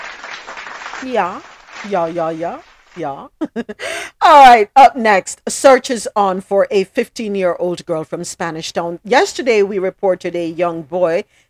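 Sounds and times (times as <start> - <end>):
applause: 0.0 - 3.0
speech: 1.0 - 11.4.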